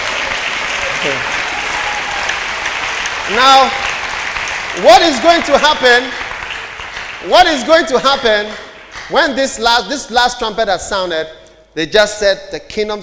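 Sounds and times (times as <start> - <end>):
audience clapping: 0.0 - 9.7
speech: 1.0 - 1.3, 3.3 - 3.9, 4.8 - 6.2, 7.2 - 13.0.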